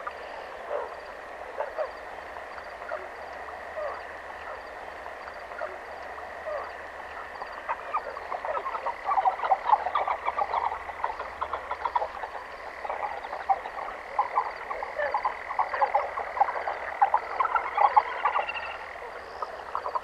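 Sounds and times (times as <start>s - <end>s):
ducks on a pond: 0.0s - 20.0s
forest ambience: 0.0s - 20.0s.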